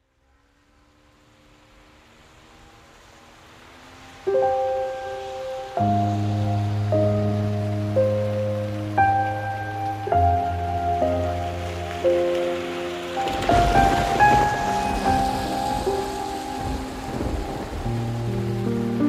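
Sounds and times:
rain: 0.0 - 19.0
piano: 4.1 - 19.0.

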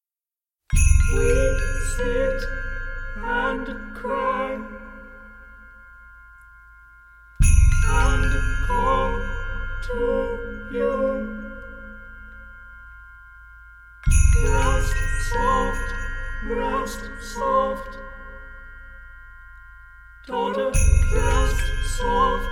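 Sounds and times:
percussion: 0.7 - 22.5
four voices singing: 1.1 - 5.4, 7.8 - 12.1, 14.1 - 18.4, 20.2 - 22.5.

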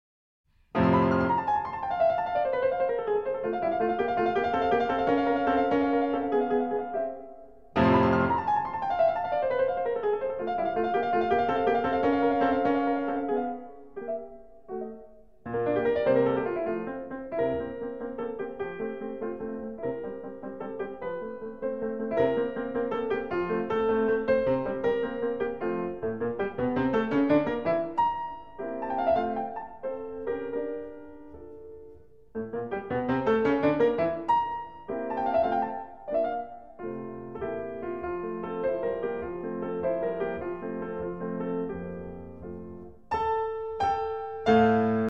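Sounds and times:
piano sonata allegro movement: 0.5 - 45.0.

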